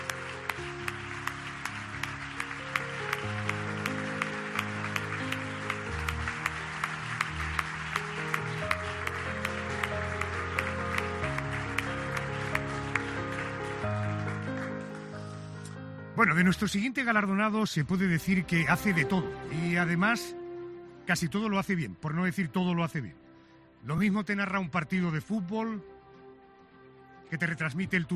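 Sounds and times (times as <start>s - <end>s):
audience applause: 0.0s - 15.4s
speech: 16.2s - 20.4s, 21.1s - 23.2s, 23.8s - 25.9s, 27.3s - 28.1s.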